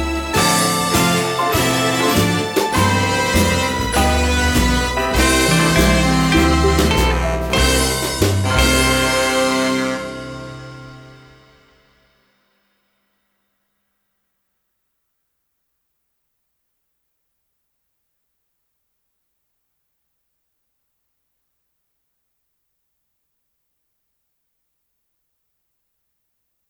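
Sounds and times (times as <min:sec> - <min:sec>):
swing Christmas song: 0:00.0 - 0:11.7.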